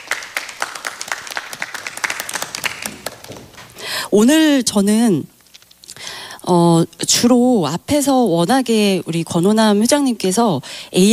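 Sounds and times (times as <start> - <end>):
audience applause: 0.0 - 3.8
speech: 4.1 - 5.4, 6.5 - 11.1.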